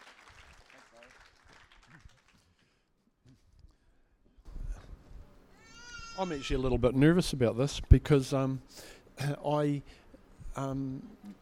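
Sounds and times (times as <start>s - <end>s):
audience applause: 0.0s - 2.6s
speech: 6.2s - 10.0s, 10.6s - 11.3s.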